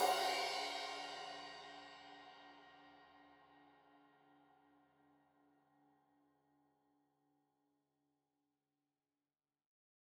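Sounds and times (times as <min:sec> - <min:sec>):
15 inch crash cymbal edge hit: 0:00.0 - 0:01.9.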